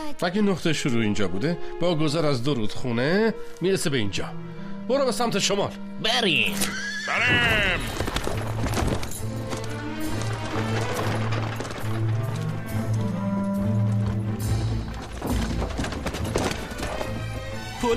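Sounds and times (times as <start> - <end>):
speech: 0.0 - 8.4
horses neighing: 6.5 - 8.3
hooves clopping: 6.8 - 17.9.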